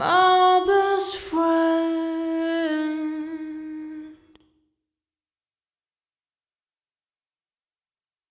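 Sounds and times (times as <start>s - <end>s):
voice echoing in an echo chamber: 0.0s - 4.4s.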